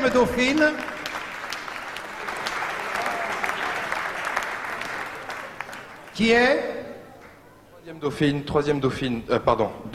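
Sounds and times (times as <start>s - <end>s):
speech: 0.0s - 1.0s, 6.2s - 6.8s, 7.9s - 9.9s
audience applause: 0.0s - 6.3s.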